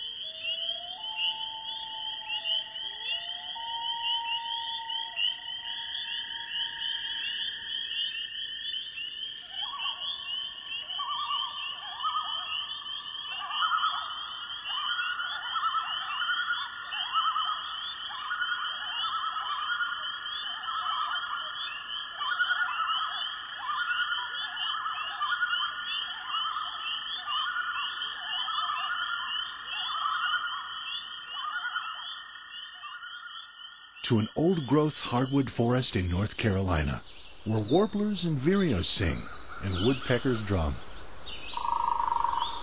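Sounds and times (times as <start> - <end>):
common loon calls: 0.0 - 33.3, 34.0 - 42.6
spring peepers singing: 0.0 - 42.6
speech: 34.1 - 40.9.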